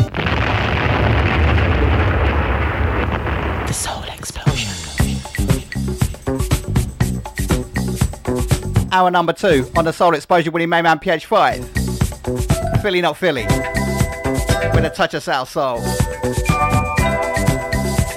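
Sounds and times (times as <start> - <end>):
bombing explosion sound effect: 0.1 - 5.3
rhythmic percussive sound: 4.4 - 8.9, 11.6 - 15.2, 15.8 - 18.1
speech: 8.9 - 13.8, 14.7 - 16.7.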